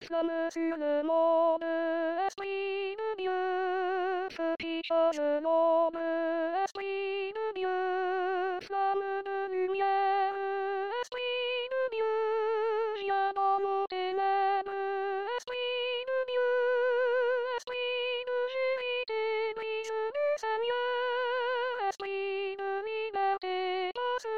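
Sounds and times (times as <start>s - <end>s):
soprano singing: 0.0s - 24.3s.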